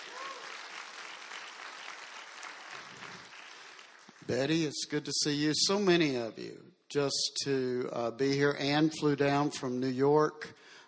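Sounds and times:
audience clapping hands: 0:00.0 - 0:04.7
speech: 0:04.3 - 0:10.6.

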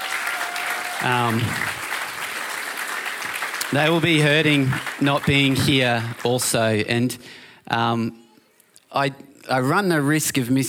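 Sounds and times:
audience clapping and cheering: 0:00.0 - 0:07.0
speech: 0:01.0 - 0:01.8, 0:03.7 - 0:08.2, 0:08.9 - 0:10.6.

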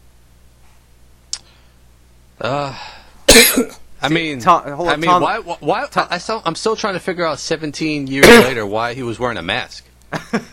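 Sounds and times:
speech: 0:02.4 - 0:10.5
person coughing: 0:03.3 - 0:03.8, 0:08.2 - 0:08.6.

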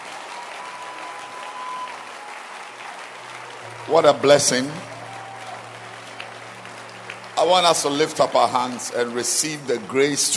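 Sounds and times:
crowd clapping: 0:00.0 - 0:10.3
speech: 0:03.9 - 0:04.9, 0:07.4 - 0:10.3.

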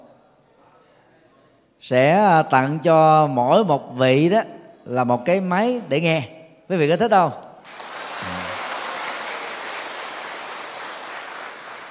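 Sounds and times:
speech: 0:01.8 - 0:07.8
audience applause: 0:07.7 - 0:11.8.

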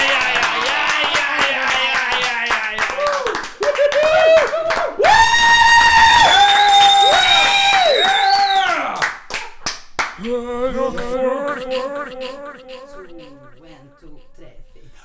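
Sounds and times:
laughter: 0:00.0 - 0:04.4, 0:11.0 - 0:13.6
loud vocal whooping and hollering: 0:00.0 - 0:09.0
small awkward round of clapping from a few people: 0:00.0 - 0:10.2.

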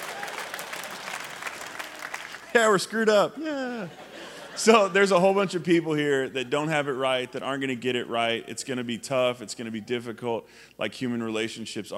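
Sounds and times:
audience applause: 0:00.0 - 0:02.8
speech: 0:02.6 - 0:04.0, 0:04.6 - 0:11.9
laughter: 0:03.4 - 0:07.0.

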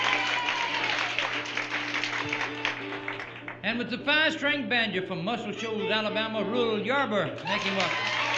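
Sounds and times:
crowd applause for a bass fiddle player: 0:00.0 - 0:03.6, 0:07.4 - 0:08.3
speech: 0:03.7 - 0:08.1.

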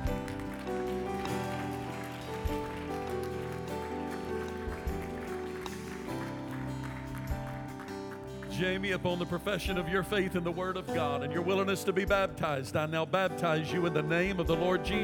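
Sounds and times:
audience hand clapping: 0:00.0 - 0:09.8
speech: 0:08.6 - 0:15.0.

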